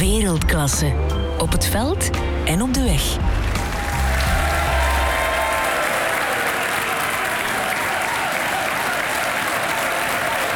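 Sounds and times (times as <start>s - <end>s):
speech: 0.1s - 3.4s
stadium crowd applause: 3.4s - 10.5s.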